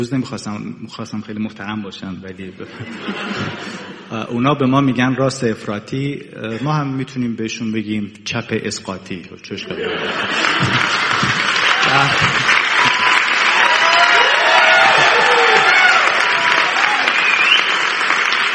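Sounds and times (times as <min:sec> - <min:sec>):
speech: 0:00.0 - 0:11.0, 0:11.9 - 0:12.4
laughter: 0:02.6 - 0:04.3, 0:09.6 - 0:13.0
large crowd applause: 0:09.8 - 0:18.5
cheers and whoops: 0:11.5 - 0:18.2.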